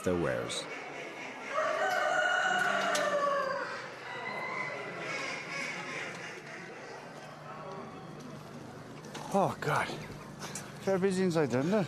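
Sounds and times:
speech: 0.0 - 0.9, 9.3 - 10.1, 10.8 - 11.8
murmur of other birds: 0.0 - 11.4
rooster crowing: 1.5 - 5.0.

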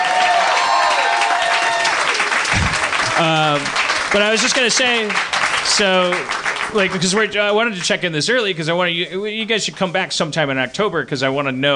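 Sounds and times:
loud crowd applause: 0.0 - 7.3
speech: 3.2 - 11.7.

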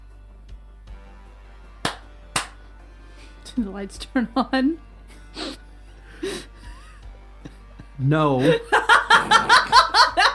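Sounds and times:
hand claps to test lights: 1.8 - 2.6
speech: 3.5 - 4.9, 8.0 - 9.6
laughter: 6.2 - 10.3.

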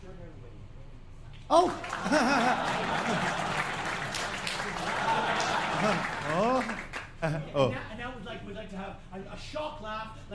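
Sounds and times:
speech: 1.5 - 2.7, 7.3 - 7.9, 8.6 - 10.3
smattering of applause: 1.5 - 7.3
polite laugh: 1.8 - 6.4, 7.2 - 7.7.

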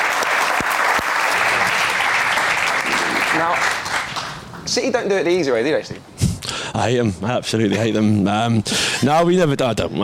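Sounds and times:
applause: 0.0 - 4.7
speech: 3.4 - 3.8, 4.7 - 6.1, 6.8 - 10.0.

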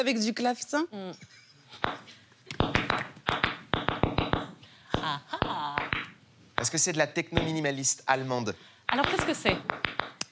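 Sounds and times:
speech: 0.0 - 2.8, 5.0 - 5.8, 6.6 - 9.8
tap dancing: 2.6 - 6.7, 8.9 - 10.2
laughter: 5.0 - 5.8.

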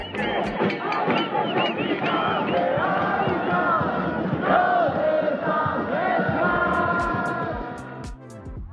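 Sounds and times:
large crowd of street protesters shouting and chanting: 0.2 - 7.3.

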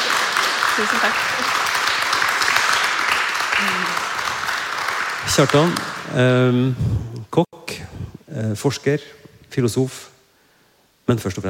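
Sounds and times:
audience applause: 0.0 - 6.5
speech: 0.8 - 1.8, 3.6 - 4.0, 5.2 - 7.6, 8.3 - 10.1, 11.1 - 11.4.

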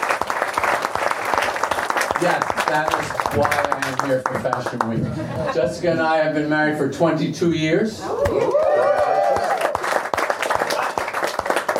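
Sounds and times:
audience applause: 0.0 - 5.0, 8.3 - 11.7
speech: 2.2 - 9.1
laughter: 4.9 - 6.1
cheers and whoop: 8.0 - 9.8.

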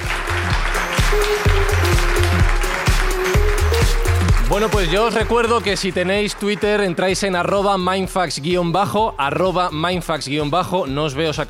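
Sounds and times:
audience applause: 0.0 - 7.4
loud music with regular thumping beat and bass: 0.0 - 11.4
speech: 4.5 - 11.4.

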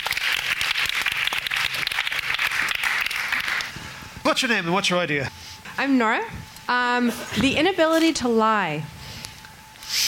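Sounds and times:
audience round of applause: 0.0 - 3.7
speech: 4.3 - 8.9.

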